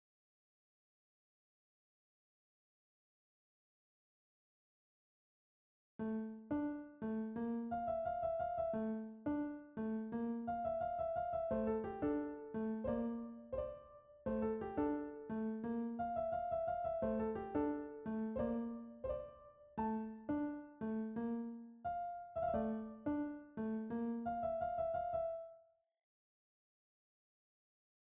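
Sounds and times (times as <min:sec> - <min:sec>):
piano: 0:06.0 - 0:25.8.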